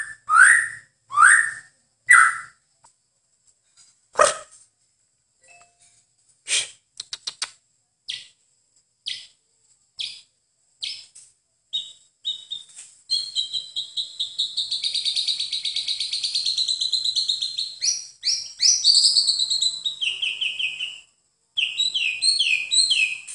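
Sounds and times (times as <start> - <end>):
white-eye song: 0.0 - 2.6, 8.1 - 8.4, 9.0 - 9.4, 10.0 - 23.3.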